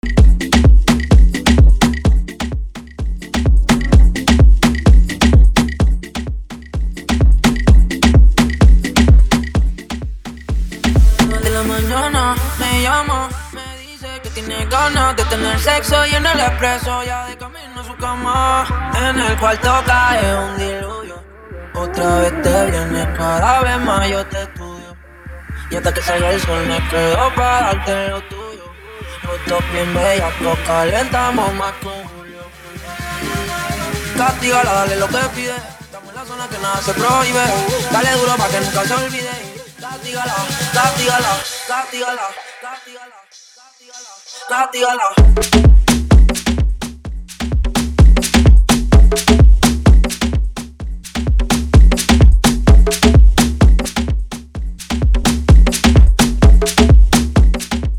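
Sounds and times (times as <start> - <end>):
afro house music at 128 bpm: 0.0 - 57.9.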